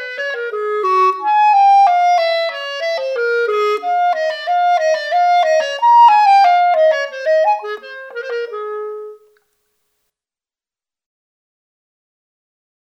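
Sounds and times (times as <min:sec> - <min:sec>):
clarinet: 0:00.0 - 0:09.4.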